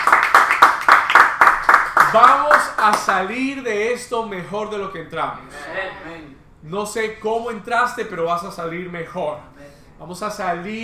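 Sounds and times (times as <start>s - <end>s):
audience applause: 0.0s - 2.9s
speech: 2.1s - 10.8s.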